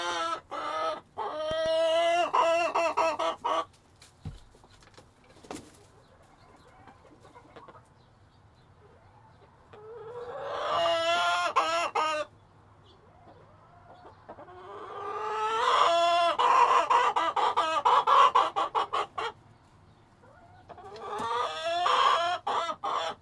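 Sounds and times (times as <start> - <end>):
chicken squawking: 0.0 - 3.7, 9.7 - 12.3, 13.3 - 19.4, 20.2 - 23.2.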